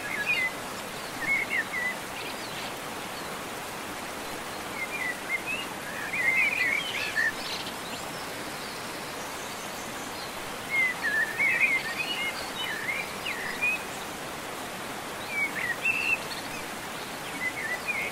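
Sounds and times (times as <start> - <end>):
birds singing in nature: 0.0 - 18.0.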